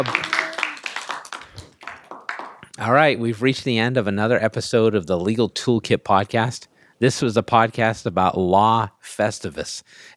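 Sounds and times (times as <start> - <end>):
speech: 0.0 - 0.2, 2.8 - 10.1
audience clapping: 0.0 - 2.8.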